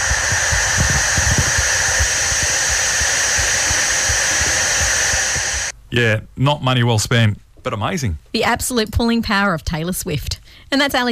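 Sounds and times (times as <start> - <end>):
white noise track: 0.0 - 5.8
speech: 5.9 - 11.1.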